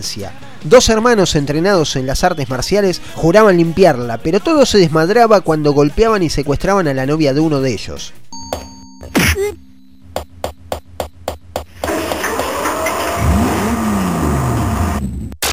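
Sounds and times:
speech: 0:00.0 - 0:08.6
sports car engine revving: 0:11.8 - 0:15.4.

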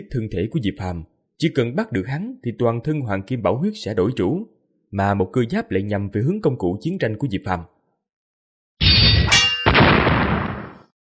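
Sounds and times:
speech: 0:00.0 - 0:07.8
golden bell clanging: 0:08.9 - 0:09.8.

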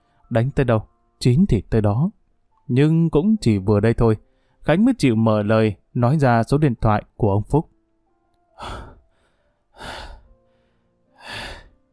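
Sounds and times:
speech: 0:00.3 - 0:07.7, 0:08.6 - 0:08.9
heavy labored breathing: 0:08.6 - 0:11.9.

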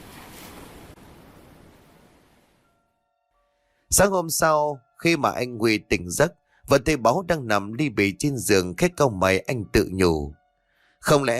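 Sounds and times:
ocean waves crashing: 0:00.0 - 0:02.5
speech: 0:04.0 - 0:10.4, 0:11.0 - 0:11.3.

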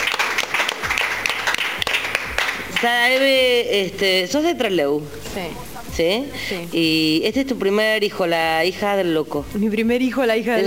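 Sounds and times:
applause for a guest musician at the Casa del Bicentenario: 0:00.0 - 0:03.3
speech: 0:02.8 - 0:10.6.

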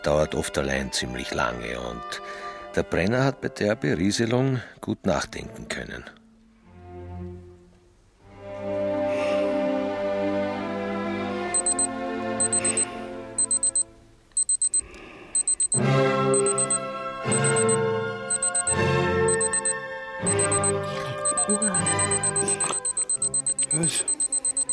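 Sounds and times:
speech: 0:00.0 - 0:06.2
music: 0:00.0 - 0:13.7, 0:15.7 - 0:24.7
watch beeping in a radio drama: 0:11.5 - 0:13.8, 0:14.4 - 0:24.7.

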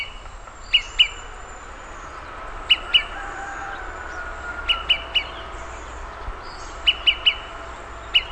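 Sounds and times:
olive-sided flycatcher Contopus cooperi pip calls: 0:00.0 - 0:01.3, 0:04.6 - 0:08.3.

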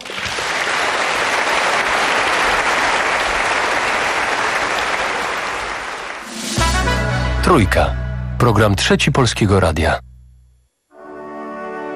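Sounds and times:
audience applause at the end of a broadcast performance: 0:00.0 - 0:06.4
speech: 0:07.5 - 0:10.1.

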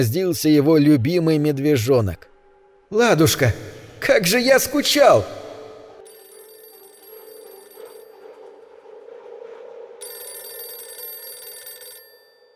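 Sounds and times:
speech: 0:00.0 - 0:02.3, 0:02.9 - 0:05.4
telephone bell ringing insistently: 0:06.1 - 0:08.4, 0:10.0 - 0:12.5.

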